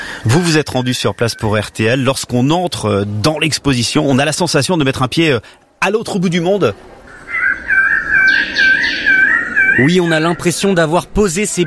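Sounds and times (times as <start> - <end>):
birds of paradise singing at a Paris exhibition: 0.0 - 2.2, 6.4 - 11.6
speech: 0.2 - 6.9, 9.8 - 11.6.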